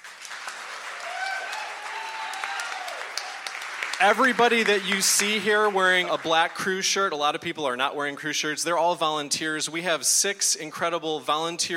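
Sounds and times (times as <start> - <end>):
audience applause for festival crew: 0.0 - 6.6
speech: 4.0 - 11.7.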